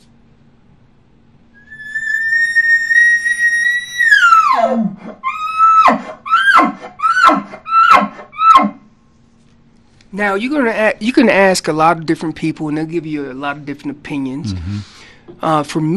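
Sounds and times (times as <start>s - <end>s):
human caller imitating an elk location bugle: 1.6s - 8.8s
speech: 10.2s - 15.9s
imitated elk grunting chuckles: 14.5s - 14.9s.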